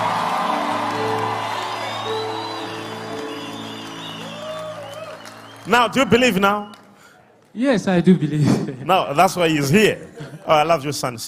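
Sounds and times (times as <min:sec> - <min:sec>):
crowd cheering and whooping: 0:00.0 - 0:06.0
audience applause: 0:00.0 - 0:07.2
speech: 0:05.6 - 0:06.8, 0:07.6 - 0:11.2.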